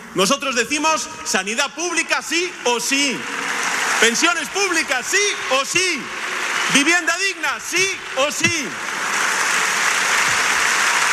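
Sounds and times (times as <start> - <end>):
speech: 0.1 - 8.9
standing audience applauding at a political rally: 2.4 - 11.1.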